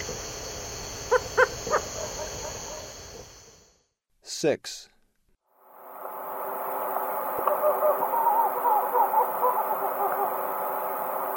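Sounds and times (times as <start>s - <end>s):
tropical screech owl purring trill: 1.1s - 3.3s, 7.1s - 11.3s.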